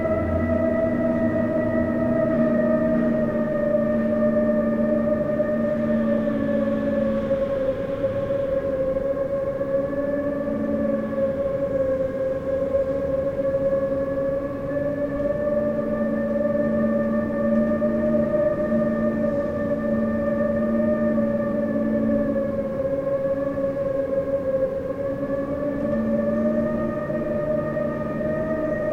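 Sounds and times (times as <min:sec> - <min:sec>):
extreme strong howling wind: 0:00.0 - 0:28.9.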